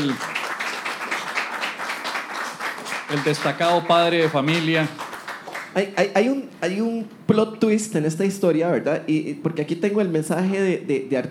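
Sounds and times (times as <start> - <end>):
speech: 0.0 - 0.3, 3.1 - 5.0, 5.7 - 11.2
audience applause: 0.0 - 5.8.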